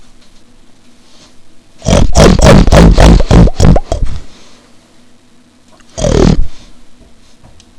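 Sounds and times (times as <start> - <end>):
pig: 1.8 - 4.1, 5.8 - 6.7.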